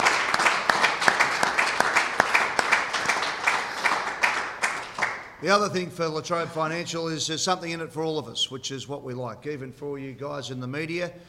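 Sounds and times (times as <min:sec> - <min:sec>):
audience applause: 0:00.0 - 0:05.4
speech: 0:05.4 - 0:11.2.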